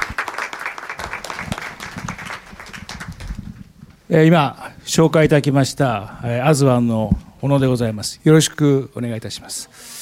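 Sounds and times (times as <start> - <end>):
audience applause: 0.0 - 3.5
speech: 4.1 - 10.0.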